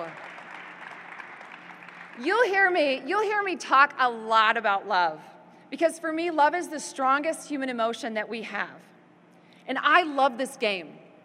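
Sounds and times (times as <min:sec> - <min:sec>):
crowd applauding: 0:00.0 - 0:02.2
speech: 0:02.2 - 0:08.9, 0:09.7 - 0:11.0.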